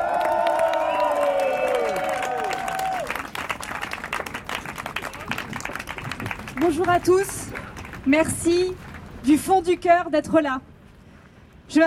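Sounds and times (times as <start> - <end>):
crowd cheering: 0.0 - 7.0
crowd applause: 0.0 - 8.0
speech: 6.6 - 7.4, 8.0 - 10.7, 11.7 - 11.8.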